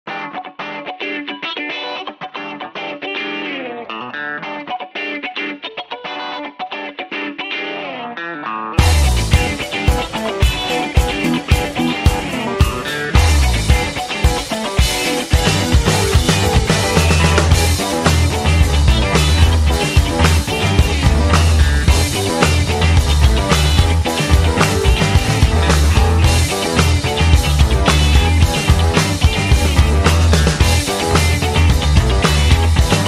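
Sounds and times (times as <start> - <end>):
zouk music: 8.8 - 33.0.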